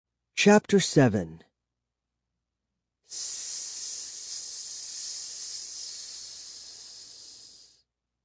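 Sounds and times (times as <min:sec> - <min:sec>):
speech: 0:00.4 - 0:01.5
mist hissing from a bottle: 0:03.1 - 0:07.8.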